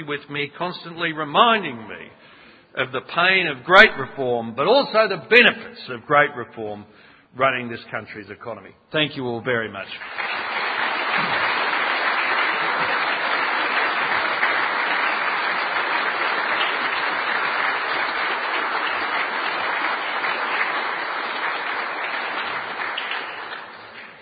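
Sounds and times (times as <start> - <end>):
speech: 0.0 - 10.5, 11.2 - 11.5
large crowd applauding after a speech: 10.0 - 24.1.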